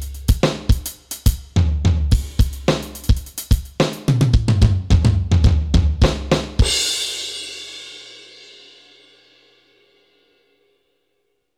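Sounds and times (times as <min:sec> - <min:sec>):
Alesis Debut electronic drum kit: 0:00.0 - 0:07.7.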